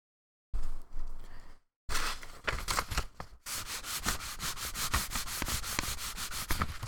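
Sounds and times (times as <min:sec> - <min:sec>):
office paper being torn: 0:02.0 - 0:06.8.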